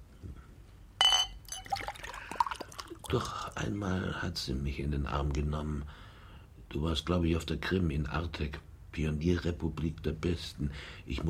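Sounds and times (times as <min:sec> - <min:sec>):
glass clinking: 0:01.0 - 0:03.0
drink being poured into a glass: 0:01.2 - 0:03.6
speech: 0:03.1 - 0:06.0, 0:06.7 - 0:11.2.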